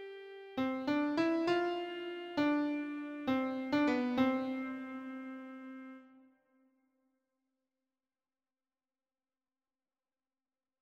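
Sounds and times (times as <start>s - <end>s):
hymn on keyboard: 0.0s - 6.1s.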